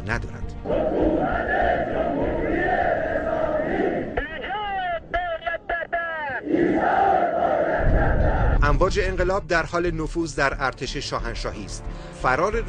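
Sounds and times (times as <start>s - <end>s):
speech: 0.0s - 1.6s, 8.7s - 12.6s
large crowd of marchers chanting in unison: 0.6s - 5.1s, 6.3s - 8.6s.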